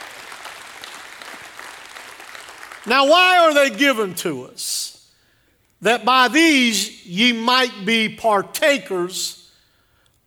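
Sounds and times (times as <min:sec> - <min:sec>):
audience hand clapping: 0:00.0 - 0:03.1
speech: 0:02.8 - 0:05.0, 0:05.8 - 0:09.4.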